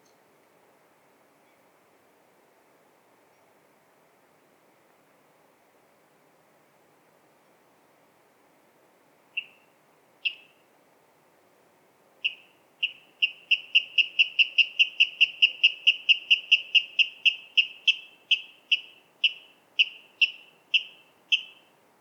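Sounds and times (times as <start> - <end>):
water rail kip calls: 12.2 - 21.7.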